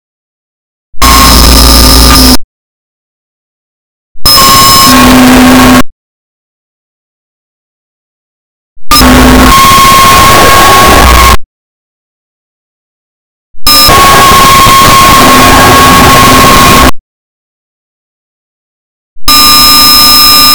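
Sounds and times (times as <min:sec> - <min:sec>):
noise: 0:00.9 - 0:02.5, 0:04.2 - 0:05.9, 0:08.8 - 0:11.5, 0:13.6 - 0:17.0, 0:19.2 - 0:20.5.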